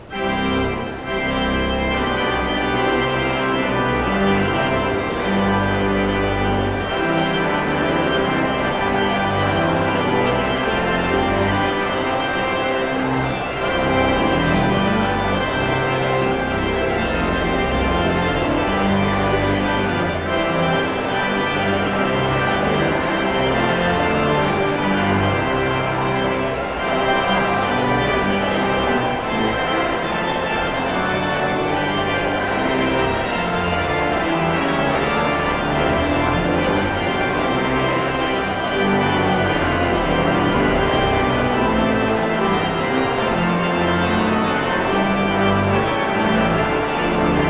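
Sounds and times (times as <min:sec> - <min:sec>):
postlude: 0:00.0 - 0:47.4.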